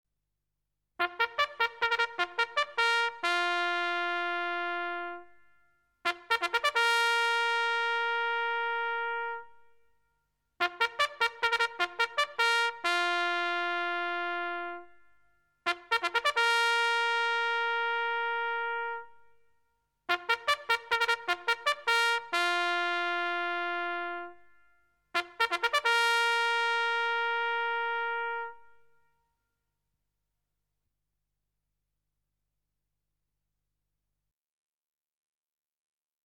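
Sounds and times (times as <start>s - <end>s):
military trumpet call: 1.0s - 5.4s, 6.1s - 9.6s, 10.6s - 15.0s, 15.7s - 19.2s, 20.1s - 24.5s, 25.2s - 28.9s.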